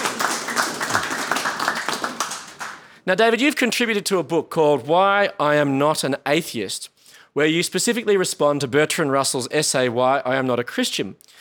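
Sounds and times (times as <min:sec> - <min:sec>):
crowd applause: 0:00.0 - 0:02.9
speech: 0:03.1 - 0:11.4.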